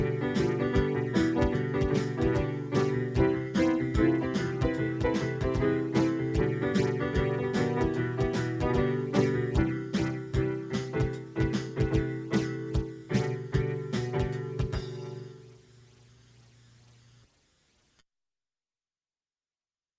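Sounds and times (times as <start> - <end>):
Motown soul music: 0.0 - 15.8.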